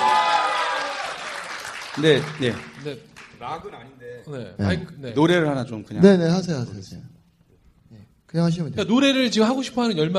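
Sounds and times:
small group applause: 0.0s - 3.8s
speech: 2.0s - 7.2s, 8.3s - 10.1s.

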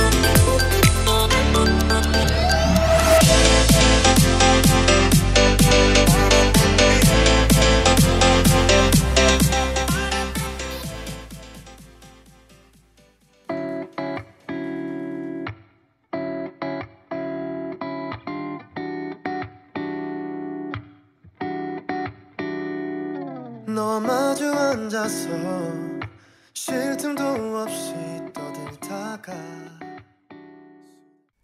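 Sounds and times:
newly released K-pop song: 0.0s - 13.0s, 23.7s - 26.0s, 26.7s - 29.8s.

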